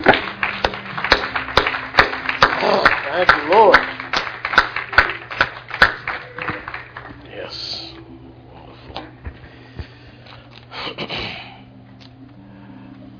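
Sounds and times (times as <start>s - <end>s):
audience clapping hands: 0.0s - 7.9s.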